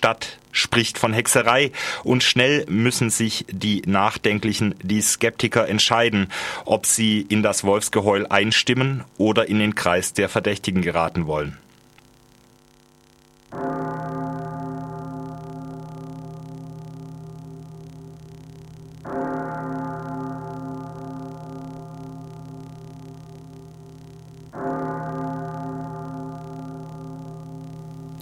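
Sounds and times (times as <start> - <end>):
speech: 0.0 - 11.7
church bells ringing: 13.5 - 28.2.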